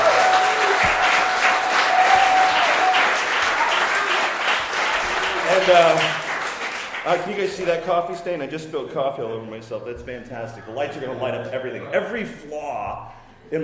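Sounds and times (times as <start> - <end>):
crowd cheering and whooping: 0.0 - 5.7
crowd applauding: 0.0 - 8.1
speech: 5.7 - 6.2, 7.1 - 13.6.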